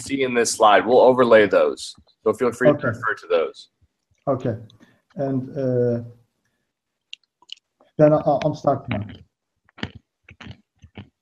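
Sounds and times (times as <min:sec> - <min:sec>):
speech: 0:00.0 - 0:06.2, 0:08.0 - 0:09.2
chewing macadamia nuts: 0:09.8 - 0:11.2.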